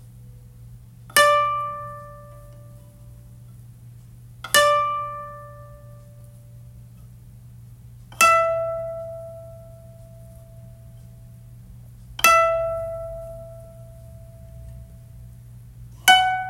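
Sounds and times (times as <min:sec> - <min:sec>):
koto tuning: 0:01.1 - 0:03.4, 0:04.4 - 0:07.0, 0:08.0 - 0:15.4, 0:16.0 - 0:16.4.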